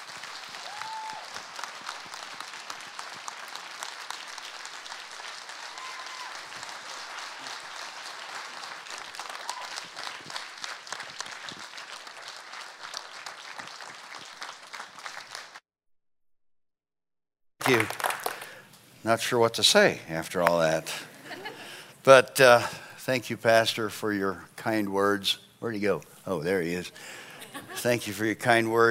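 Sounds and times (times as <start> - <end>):
church congregation applauding to welcome their pastor: 0.0 - 15.6, 17.6 - 18.8
speech: 17.7 - 18.0, 19.0 - 21.1, 22.0 - 27.2, 27.8 - 28.8
laughter: 20.9 - 21.8, 27.0 - 28.2.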